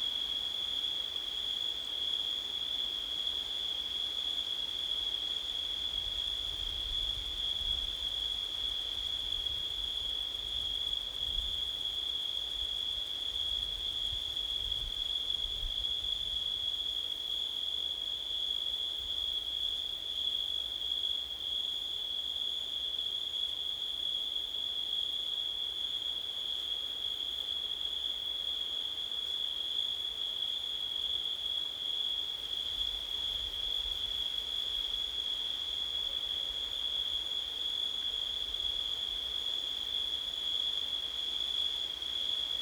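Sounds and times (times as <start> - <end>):
crickets chirping: 0.0 - 42.6.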